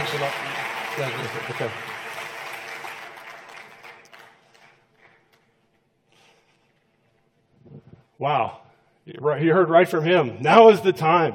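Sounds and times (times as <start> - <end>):
audience applause: 0.0 - 5.4
speech: 0.1 - 2.0, 8.2 - 11.3.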